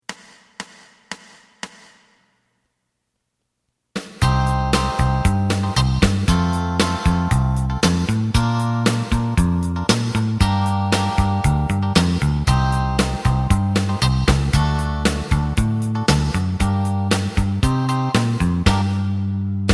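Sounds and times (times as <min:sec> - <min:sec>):
lead melody: 0:04.2 - 0:19.7.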